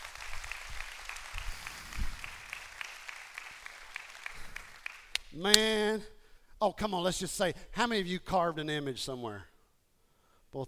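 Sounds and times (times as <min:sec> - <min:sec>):
congregation hand clapping: 0:00.0 - 0:05.6
speech: 0:05.4 - 0:09.5.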